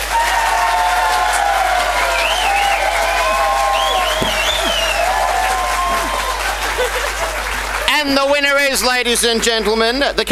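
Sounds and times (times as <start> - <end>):
audience applause for a debate vote: 0.0 - 8.6
laughter: 4.0 - 7.9
speech: 8.1 - 10.3.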